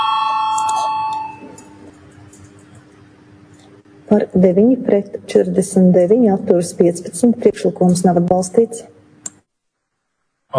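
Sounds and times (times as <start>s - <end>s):
parliament voting bell ringing: 0.0s - 1.8s
speech: 4.1s - 9.0s.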